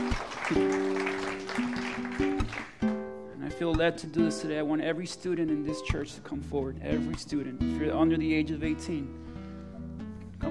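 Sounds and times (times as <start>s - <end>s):
audience applause: 0.0s - 2.9s
speech: 0.5s - 0.8s, 3.6s - 9.2s.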